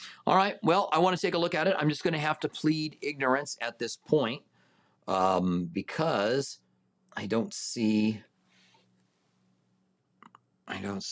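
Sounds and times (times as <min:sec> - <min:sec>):
speech: 0:00.3 - 0:04.5, 0:05.1 - 0:06.6, 0:07.2 - 0:08.3, 0:10.7 - 0:11.0
computer mouse clicks: 0:10.2 - 0:10.5.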